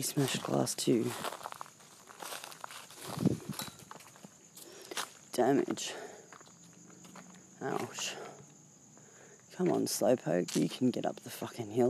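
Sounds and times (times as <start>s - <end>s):
speech: 0.0s - 1.5s, 5.4s - 6.2s, 7.6s - 8.3s, 9.6s - 11.8s
footsteps crunching through dry dead leaves: 0.0s - 8.2s, 9.6s - 10.9s.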